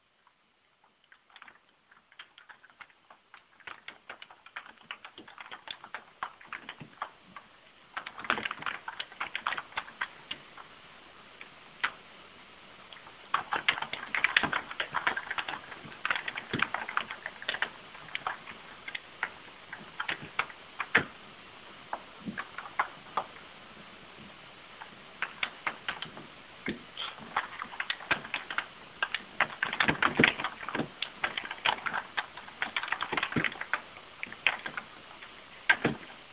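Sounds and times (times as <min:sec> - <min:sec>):
typing on a computer keyboard: 0:01.1 - 0:10.7, 0:12.9 - 0:21.2, 0:24.8 - 0:36.3.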